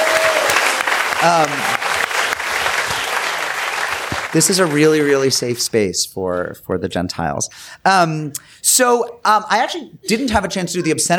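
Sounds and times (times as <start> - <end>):
cheering whoop: 0.0 - 4.1
audience clapping at a live comedy show: 0.0 - 5.7
speech: 1.2 - 1.8, 4.3 - 11.1.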